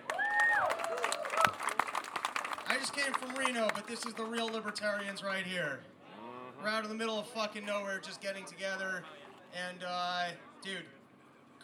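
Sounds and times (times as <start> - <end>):
audience applause: 0.0 - 4.7
speech: 2.8 - 6.0, 6.6 - 11.0.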